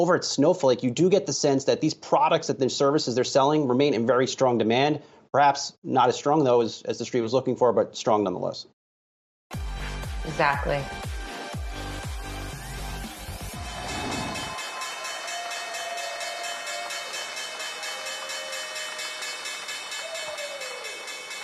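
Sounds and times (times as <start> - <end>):
speech: 0.0 - 8.8, 10.3 - 11.1
stock exchange opening bell ringing: 14.0 - 21.4.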